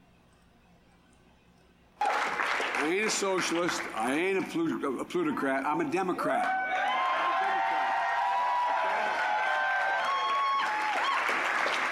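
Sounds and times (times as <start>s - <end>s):
applause: 2.0s - 4.5s, 6.8s - 11.9s
speech: 2.8s - 6.6s
large crowd cheering and yelling: 6.2s - 11.9s
higher-pitched shouts and whoops: 6.3s - 11.4s.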